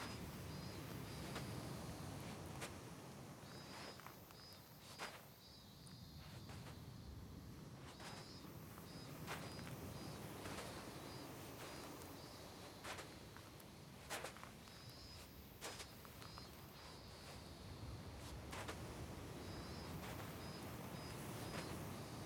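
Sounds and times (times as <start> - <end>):
beach ambience: 0.0 - 22.2.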